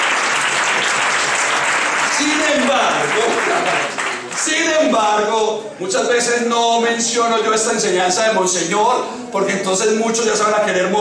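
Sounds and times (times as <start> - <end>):
audience applause: 0.0 - 4.7
speech: 2.6 - 10.9.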